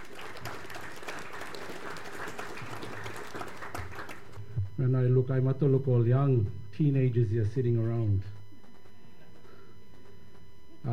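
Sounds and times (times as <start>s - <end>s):
audience applause welcoming the Torres Strait Regional Authority chairperson at an exhibition opening: 0.0s - 4.4s
speech: 4.8s - 8.3s.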